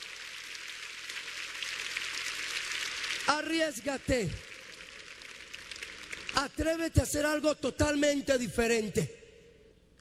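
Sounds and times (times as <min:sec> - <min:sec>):
audience applause: 0:00.0 - 0:06.4
speech: 0:03.3 - 0:04.5, 0:06.4 - 0:09.2.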